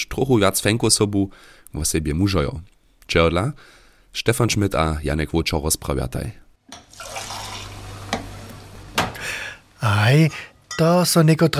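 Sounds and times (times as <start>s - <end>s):
speech: 0.0s - 7.2s, 9.8s - 11.5s
fresh draught beer being tapped: 6.8s - 8.8s.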